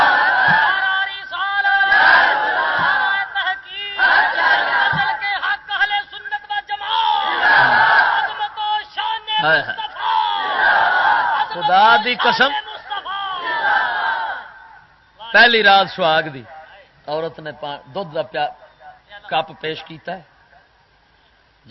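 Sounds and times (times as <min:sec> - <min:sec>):
crowd shouting in unison answering the Nara-e-Takbir call at a Punjabi religious speech: 0:00.0 - 0:05.4, 0:06.9 - 0:08.5, 0:09.4 - 0:14.8
speech: 0:12.0 - 0:12.6, 0:15.4 - 0:18.6, 0:19.3 - 0:20.3.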